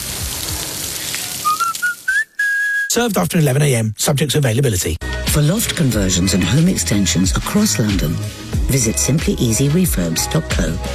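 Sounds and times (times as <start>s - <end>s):
beef burger patties sizzling: 0.0s - 2.2s
thin whistling tones: 1.4s - 3.0s
speech: 2.9s - 10.9s.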